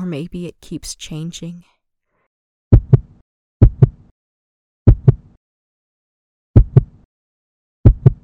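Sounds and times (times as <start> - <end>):
speech: 0.1 - 1.8
heartbeat thudding: 2.7 - 4.0, 4.9 - 5.3, 6.6 - 7.0, 7.8 - 8.2.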